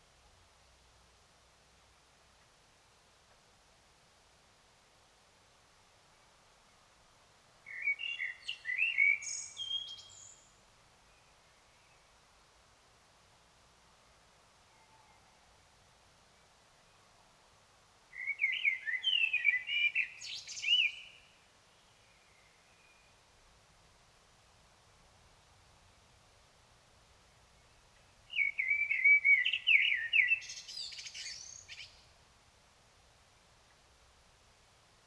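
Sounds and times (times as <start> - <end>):
Common blackbird singing: 7.7 - 10.5, 18.2 - 21.3, 28.3 - 32.0.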